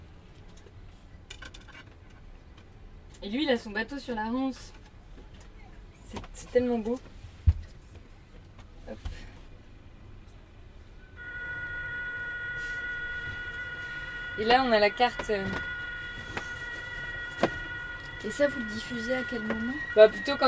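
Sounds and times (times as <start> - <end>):
speech: 3.2 - 4.8, 6.4 - 7.1, 14.4 - 15.7, 18.2 - 20.4
Morse code signal: 11.2 - 20.4.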